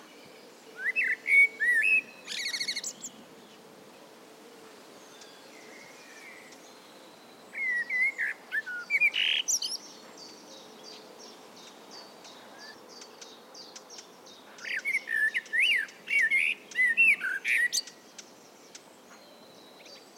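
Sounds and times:
common blackbird singing: 0.0 - 3.6, 5.0 - 20.1.

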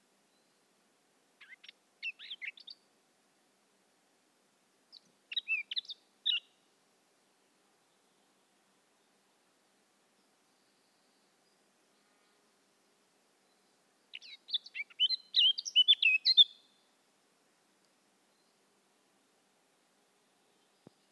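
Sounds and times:
faint background hiss: 0.0 - 21.1
Eurasian blackcap warbling song: 1.4 - 2.8, 4.9 - 6.6, 13.5 - 16.7.

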